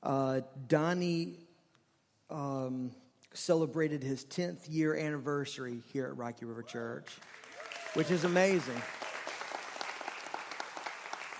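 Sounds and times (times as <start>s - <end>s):
speech: 0.1s - 1.4s, 2.3s - 9.0s
church congregation applauding at Rocky River Church: 7.1s - 11.3s.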